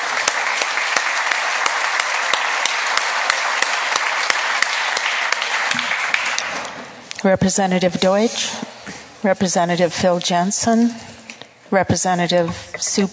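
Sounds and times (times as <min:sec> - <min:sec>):
crowd applauding: 0:00.0 - 0:06.9
speech: 0:07.2 - 0:11.1, 0:11.7 - 0:13.1.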